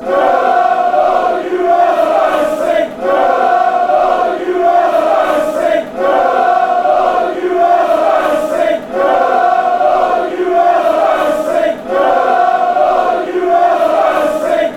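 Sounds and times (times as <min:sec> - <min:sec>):
chanting: 0:00.0 - 0:14.7.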